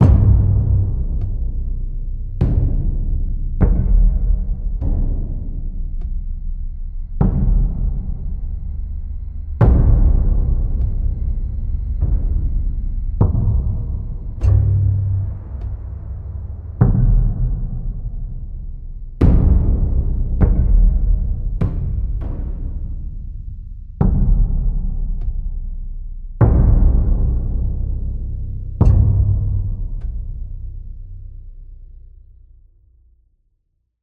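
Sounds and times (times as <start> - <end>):
tense music loop: 0.0 - 32.3.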